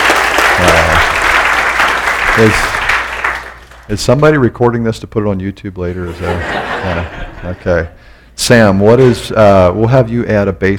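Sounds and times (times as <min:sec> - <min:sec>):
audience applause: 0:00.0 - 0:03.9
speech: 0:02.4 - 0:02.8, 0:03.9 - 0:10.7
laughter: 0:06.0 - 0:07.9.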